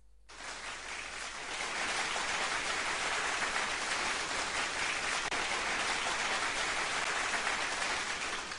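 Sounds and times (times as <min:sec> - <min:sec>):
slow clap sound effect: 0:00.3 - 0:08.5.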